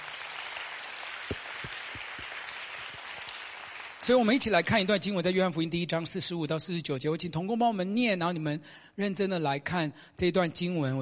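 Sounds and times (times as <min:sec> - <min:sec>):
audience clapping: 0:00.0 - 0:04.7
speech: 0:04.0 - 0:11.0.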